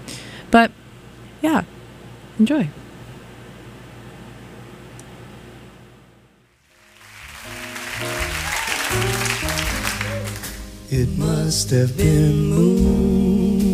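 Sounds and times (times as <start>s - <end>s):
speech: 0.5s - 0.8s, 1.4s - 1.8s, 2.4s - 2.8s, 10.9s - 13.7s
audience clapping at live music performance: 6.6s - 10.8s.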